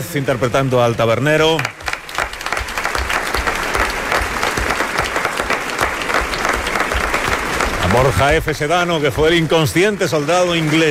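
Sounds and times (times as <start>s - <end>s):
speech: 0.0s - 1.8s, 7.9s - 10.8s
audience applause for actors: 0.0s - 10.8s.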